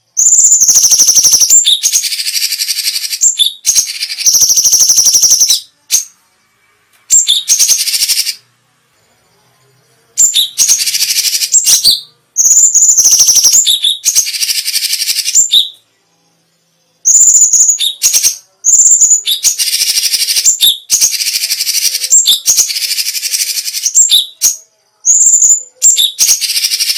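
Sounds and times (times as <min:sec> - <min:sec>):
Cucak cungkok trills and chatter: 0:00.2 - 0:06.1, 0:10.2 - 0:15.8, 0:17.1 - 0:26.9.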